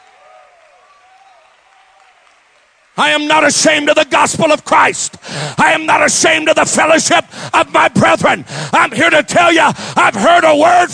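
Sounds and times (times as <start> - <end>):
audience clapping hands: 0.0 - 4.2
speech: 3.0 - 10.9.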